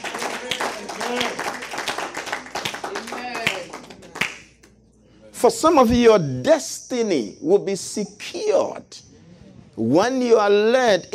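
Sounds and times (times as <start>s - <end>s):
hand clapping: 0.0s - 4.8s
speech: 5.4s - 9.0s, 9.8s - 11.1s.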